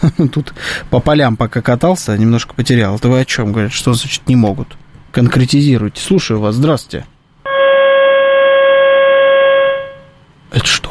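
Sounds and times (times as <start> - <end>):
speech: 0.0 - 7.1, 10.5 - 10.8
train horn signaling: 7.5 - 10.2.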